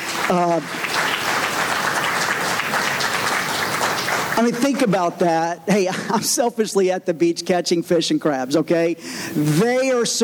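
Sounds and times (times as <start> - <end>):
audience applause: 0.0 - 5.0
speech: 0.3 - 0.9, 4.4 - 10.2.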